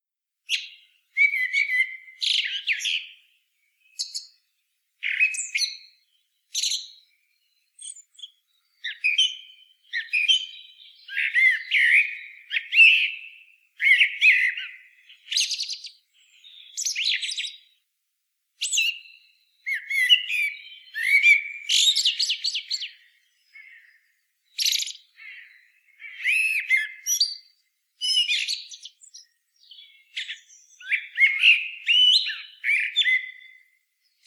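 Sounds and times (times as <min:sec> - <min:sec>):
Eurasian blackbird singing: 0:00.5 - 0:17.8, 0:18.6 - 0:34.2.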